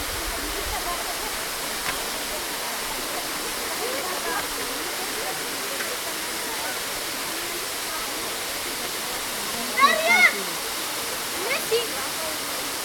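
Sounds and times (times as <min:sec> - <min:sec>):
waterfall in Tiznit: 0:00.0 - 0:12.8.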